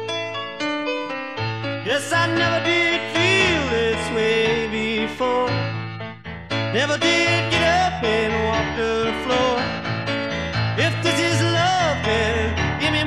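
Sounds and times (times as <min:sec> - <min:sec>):
vocal piano: 0:00.0 - 0:13.0.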